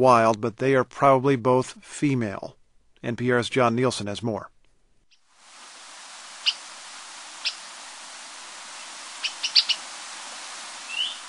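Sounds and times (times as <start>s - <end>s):
speech: 0.0s - 4.6s
Hawaiian poo-uli bird chirpy call: 6.4s - 6.7s, 7.3s - 7.7s, 8.7s - 10.0s, 10.7s - 11.2s.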